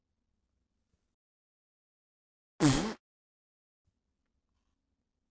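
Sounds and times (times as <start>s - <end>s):
fart: 2.6s - 3.0s.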